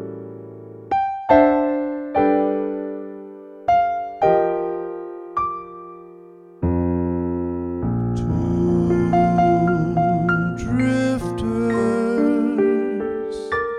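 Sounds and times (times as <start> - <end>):
piano: 0.0 - 13.7
person singing: 8.0 - 13.7.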